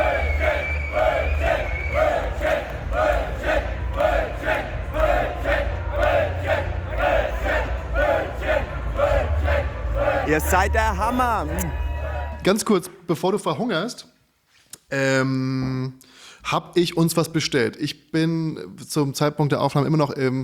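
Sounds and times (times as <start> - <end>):
large festival crowd chanting a short phrase: 0.0 - 12.5
speech: 10.3 - 11.8, 12.4 - 14.1, 14.9 - 20.4.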